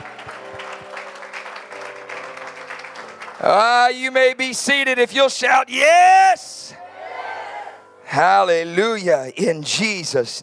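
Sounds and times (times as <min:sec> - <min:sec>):
crowd clapping: 0:00.0 - 0:04.1
speech: 0:03.4 - 0:06.8, 0:08.2 - 0:10.4.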